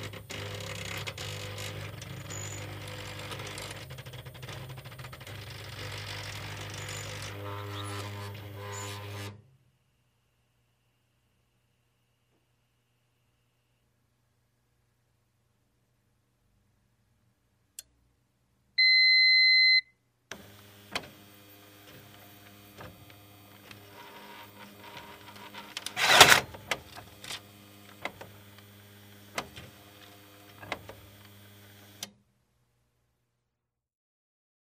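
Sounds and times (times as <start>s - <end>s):
fax machine sequence: 0.0s - 9.4s, 18.8s - 31.2s.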